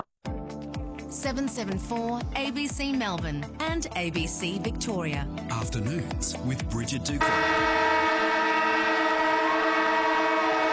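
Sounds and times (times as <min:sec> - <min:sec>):
speech: 0:01.1 - 0:07.8
siren: 0:07.2 - 0:10.7.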